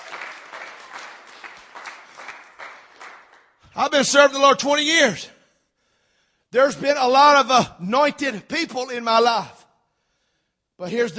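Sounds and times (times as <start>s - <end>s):
audience hand clapping: 0.0s - 3.8s
speech: 3.8s - 5.4s, 6.5s - 9.6s, 10.8s - 11.1s.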